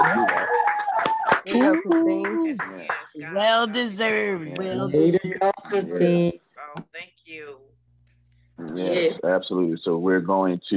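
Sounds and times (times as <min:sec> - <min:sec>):
people clapping over unmuted microphones: 0:00.0 - 0:04.0
speech: 0:01.5 - 0:06.4, 0:08.7 - 0:10.7.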